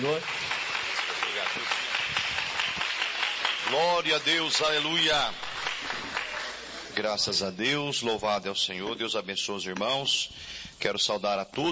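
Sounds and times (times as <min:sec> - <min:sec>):
speech: 0:00.0 - 0:00.5, 0:03.7 - 0:05.4, 0:07.0 - 0:11.6
audience clapping hands: 0:00.0 - 0:06.9.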